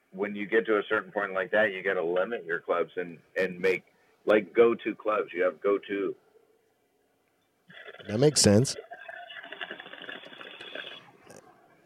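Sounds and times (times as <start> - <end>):
speech: 0.2 - 6.2, 8.0 - 8.9
water bubbling in a bong during a hit: 7.7 - 11.4.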